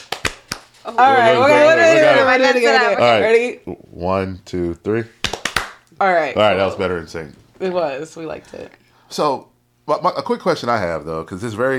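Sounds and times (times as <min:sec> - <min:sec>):
two hand claps: 0:00.0 - 0:00.8, 0:05.2 - 0:05.9
speech: 0:00.8 - 0:05.2, 0:06.0 - 0:11.7.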